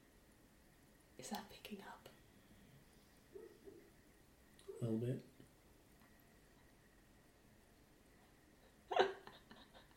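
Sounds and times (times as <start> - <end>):
speech: 1.2 - 2.2, 4.8 - 5.3
dog making noises while dreaming: 3.3 - 4.0.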